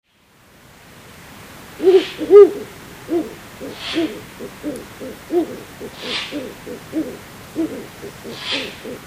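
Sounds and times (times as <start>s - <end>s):
Ural owl hooting at Sukagawa: 1.8s - 9.0s.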